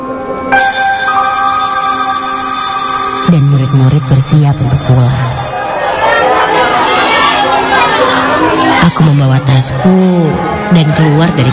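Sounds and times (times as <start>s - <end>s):
electronic school dismissal bell ringing: 0.5s - 7.3s
speech: 3.3s - 5.4s, 8.8s - 11.5s
laughter: 5.5s - 9.1s.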